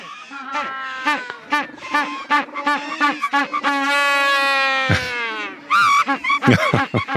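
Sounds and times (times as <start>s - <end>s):
Magellanic penguin braying call: 0.2s - 7.1s
laughter: 4.9s - 5.2s, 5.8s - 7.1s.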